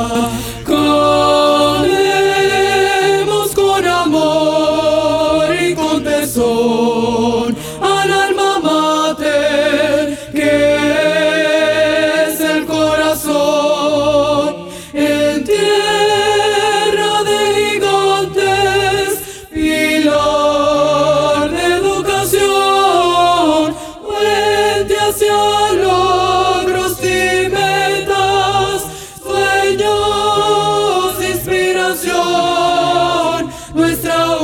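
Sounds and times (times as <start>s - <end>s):
alto voices of a choir singing an anthem: 0.0s - 34.4s.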